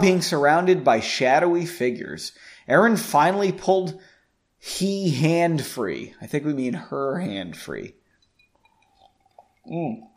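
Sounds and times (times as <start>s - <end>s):
speech: 0.0s - 8.0s, 9.6s - 10.1s
sipping a drink: 8.2s - 10.1s.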